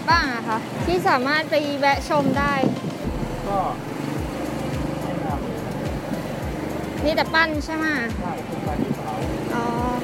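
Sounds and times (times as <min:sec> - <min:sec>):
ferry boat engine rumble crossing the river to Ko Kret: 0:00.0 - 0:10.0
speech: 0:00.5 - 0:02.8, 0:03.5 - 0:04.0, 0:07.0 - 0:10.0.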